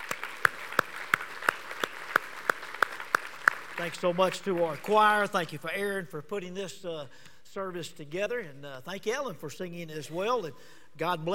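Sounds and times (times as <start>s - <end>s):
audience applauding worship leaders: 0.0s - 5.5s
speech: 3.8s - 11.3s.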